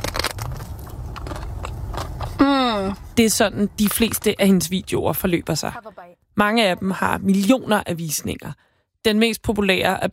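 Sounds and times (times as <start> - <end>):
biting and chewing cream-filled pastries: 0.0 - 2.4
crust crackling: 0.0 - 3.2
speech: 2.4 - 10.1.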